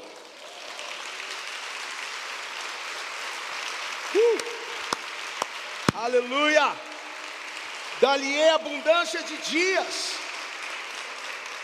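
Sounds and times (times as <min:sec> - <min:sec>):
audience applause: 0:00.0 - 0:11.6
speech: 0:06.0 - 0:06.9, 0:08.0 - 0:10.2.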